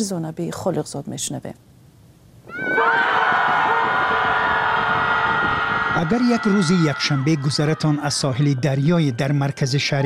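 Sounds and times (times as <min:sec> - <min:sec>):
speech: 0:00.0 - 0:01.8, 0:06.0 - 0:10.0
group shouting at a scream gathering: 0:02.5 - 0:07.8.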